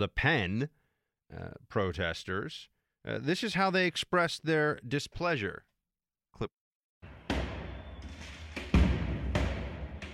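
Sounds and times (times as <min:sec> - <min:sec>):
speech: 0:00.0 - 0:05.7, 0:06.4 - 0:06.6
projectiles and incendiaries thudding and banging at a Paris May Day riot: 0:07.0 - 0:10.1.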